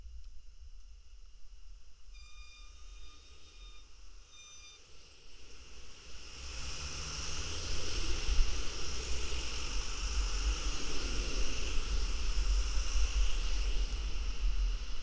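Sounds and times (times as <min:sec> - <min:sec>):
traffic noise at an intersection recorded by a contact mic: 0:05.5 - 0:14.8.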